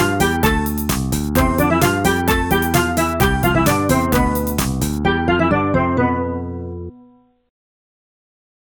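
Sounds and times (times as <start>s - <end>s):
bad synth beach music: 0.0s - 6.9s.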